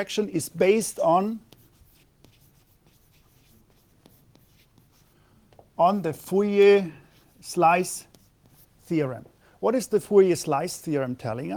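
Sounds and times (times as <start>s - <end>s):
speech: 0.0s - 1.5s, 5.8s - 8.1s, 8.9s - 11.5s
pen writing on a board during a lecture: 1.4s - 5.7s, 8.0s - 8.9s.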